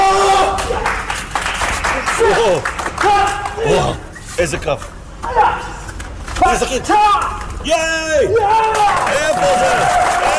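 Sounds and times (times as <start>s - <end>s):
group clapping on command during a training drill: 0.0s - 4.0s, 8.4s - 10.3s
people talking and shouting: 0.0s - 10.3s
speech: 3.7s - 5.6s, 6.5s - 10.1s.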